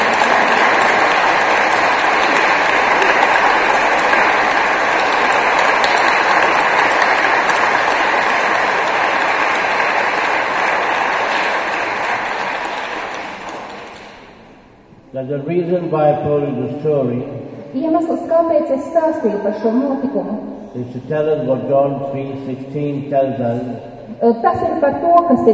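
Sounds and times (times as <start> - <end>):
audience clapping: 0.0 - 14.6
speech: 15.3 - 25.5.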